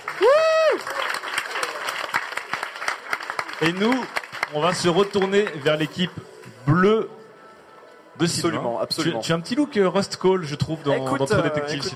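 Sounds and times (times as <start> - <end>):
applause: 0.0 - 6.2
speech: 3.6 - 7.2, 8.2 - 11.9.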